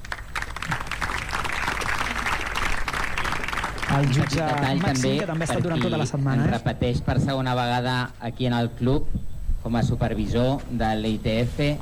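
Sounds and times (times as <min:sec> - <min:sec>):
applause from the stands: 0:00.0 - 0:06.5
speech: 0:04.0 - 0:11.7.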